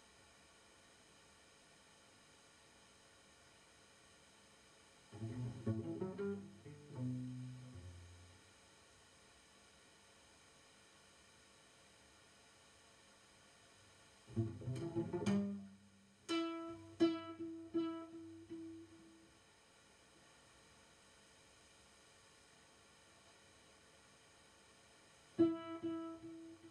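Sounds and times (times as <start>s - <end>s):
two cellos at a birthday concert: 5.1s - 8.3s, 14.3s - 19.0s, 25.4s - 26.6s.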